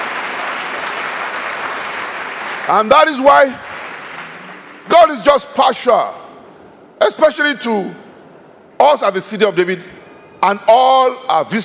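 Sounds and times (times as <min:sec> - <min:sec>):
audience clapping: 0:00.0 - 0:05.2
speech: 0:02.7 - 0:03.7, 0:04.9 - 0:06.2, 0:07.0 - 0:08.0, 0:08.8 - 0:11.6.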